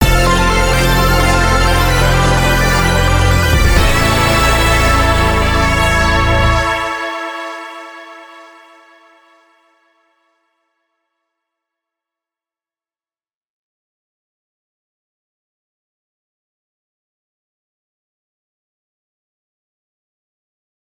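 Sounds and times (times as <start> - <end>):
fanfare: 0.0 - 8.9.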